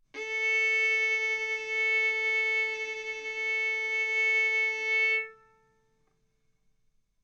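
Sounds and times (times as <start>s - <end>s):
violin bowed mezzo-forte on the A string, A4 and B4: 0.2s - 5.8s.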